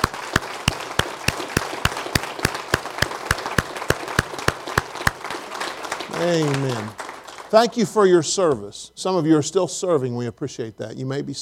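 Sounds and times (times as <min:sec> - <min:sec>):
audience applause: 0:00.0 - 0:07.5
speech: 0:06.2 - 0:11.4.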